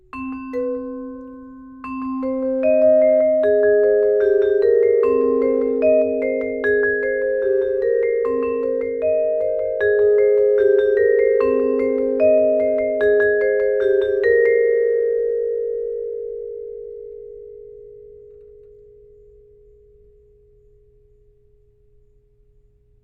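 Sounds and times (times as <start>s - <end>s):
vibraphone: 0.0s - 16.9s.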